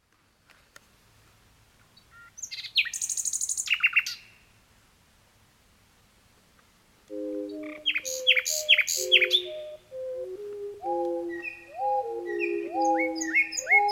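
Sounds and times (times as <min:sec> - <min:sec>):
Common Nightingale singing: 0:02.0 - 0:04.4, 0:07.1 - 0:13.9.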